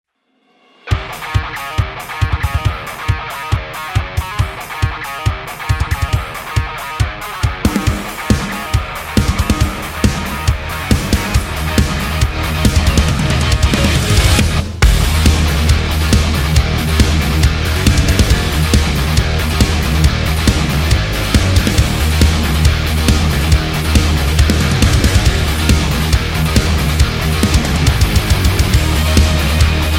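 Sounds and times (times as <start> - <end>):
metal music: 0.7 - 29.9.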